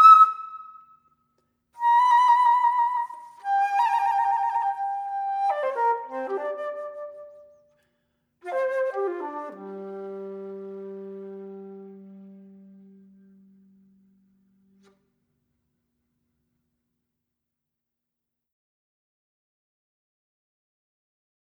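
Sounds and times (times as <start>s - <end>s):
flute playing: 0.0s - 0.8s, 1.8s - 7.6s, 8.4s - 13.7s.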